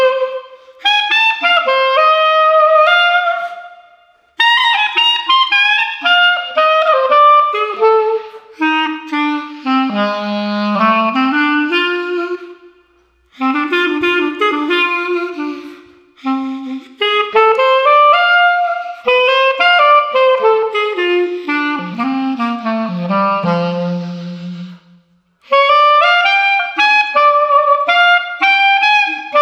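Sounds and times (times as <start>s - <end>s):
street clarinet playing: 0.0s - 29.4s.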